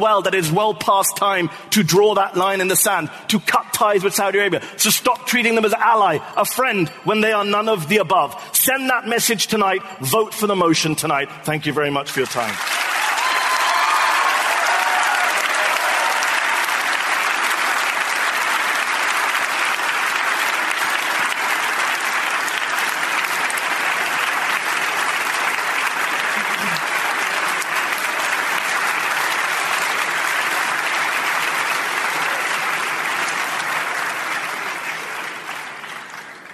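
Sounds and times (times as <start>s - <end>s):
speech: 0.0s - 12.8s
audience applause: 12.2s - 36.5s.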